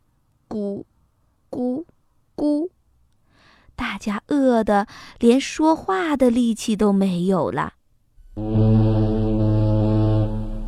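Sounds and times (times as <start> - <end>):
speech: 0.5 - 0.9, 1.5 - 2.7, 3.8 - 7.8
loud deep ship horn: 8.2 - 10.6.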